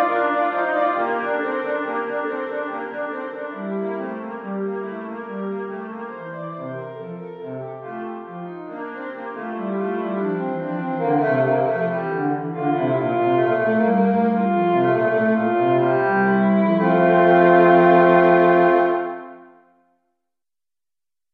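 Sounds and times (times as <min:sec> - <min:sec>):
strings playing a two-voice invention: 0:00.0 - 0:05.1, 0:08.6 - 0:19.4.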